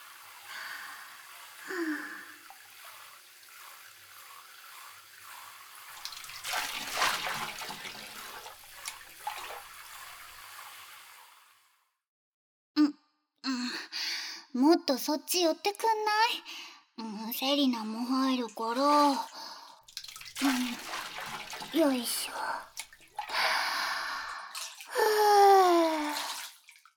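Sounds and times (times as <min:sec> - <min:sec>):
shower running: 0:00.0 - 0:11.8, 0:18.2 - 0:26.9
speech: 0:14.7 - 0:16.7, 0:17.3 - 0:19.4, 0:21.8 - 0:22.2.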